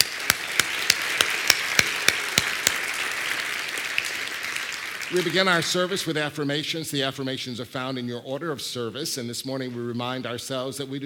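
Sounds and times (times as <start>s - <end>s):
audience applause: 0.0s - 6.2s
speech: 5.1s - 11.0s.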